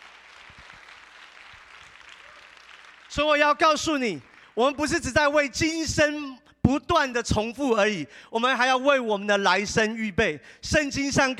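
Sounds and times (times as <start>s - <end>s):
audience clapping: 0.0s - 4.8s
speech: 3.1s - 11.3s.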